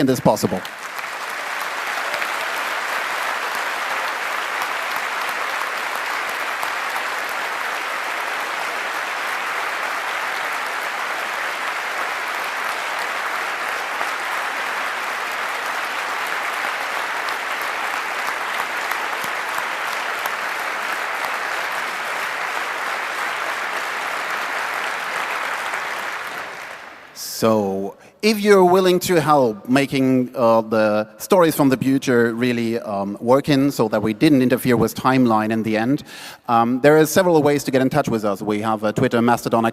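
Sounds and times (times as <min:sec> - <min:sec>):
speech: 0:00.0 - 0:00.9, 0:27.4 - 0:39.7
large audience applause: 0:00.0 - 0:27.2.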